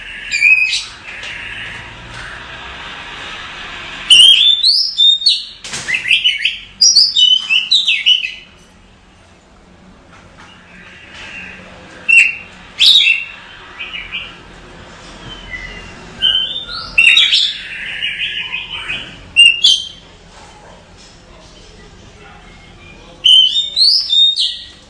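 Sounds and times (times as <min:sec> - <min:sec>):
Oriental magpie-robin whistled song: 0:00.1 - 0:01.0, 0:04.1 - 0:08.5, 0:10.7 - 0:14.4, 0:15.3 - 0:20.0, 0:22.6 - 0:24.8.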